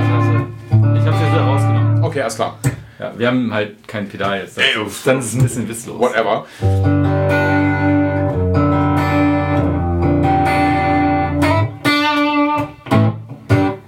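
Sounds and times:
electric guitar through 5150 amp profile with reverb: 0.0s - 3.0s, 6.5s - 13.8s
speech: 2.2s - 7.6s.

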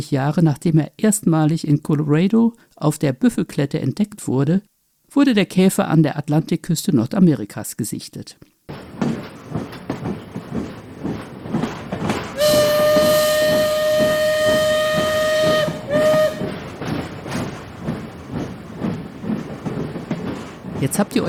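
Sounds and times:
speech: 0.0s - 9.1s, 20.8s - 21.2s
steam train rattling: 8.7s - 21.2s
steam train horn: 12.4s - 16.7s.

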